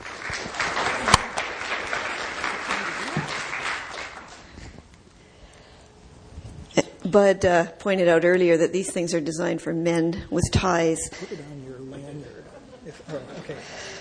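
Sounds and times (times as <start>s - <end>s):
audience applause welcoming a speaker to a talk on sexual variations: 0.0s - 4.6s
laughter: 2.0s - 3.7s, 11.1s - 13.9s
speech: 7.1s - 11.6s.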